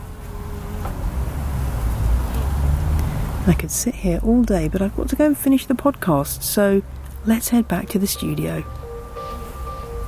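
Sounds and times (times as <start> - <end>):
bees buzzing around marjoram flowers: 0.0 - 1.8, 7.2 - 10.0
soft rumbling outdoor background: 0.0 - 10.0
speech: 3.4 - 8.8.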